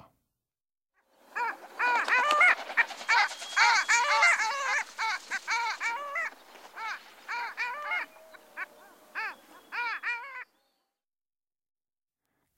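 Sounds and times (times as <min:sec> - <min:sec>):
Common Gallinule giving harsh scratchy squawks: 0:01.3 - 0:10.5.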